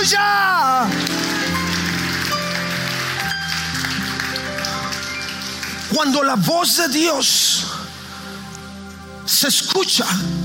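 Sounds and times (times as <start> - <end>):
speech: 0.0 - 1.0, 5.9 - 7.8, 9.3 - 10.4
crowd applauding: 0.0 - 6.5.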